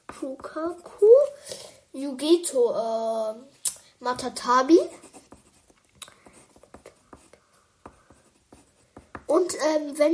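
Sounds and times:
writing scratches and small taps: 0.0 - 1.0, 4.2 - 9.7
speech: 0.2 - 5.0, 9.4 - 10.1.

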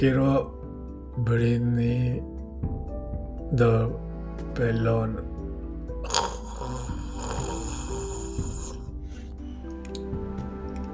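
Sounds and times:
speech: 0.0 - 0.6, 1.2 - 2.8, 3.5 - 5.3
man snoring in his sleep: 6.0 - 9.3.

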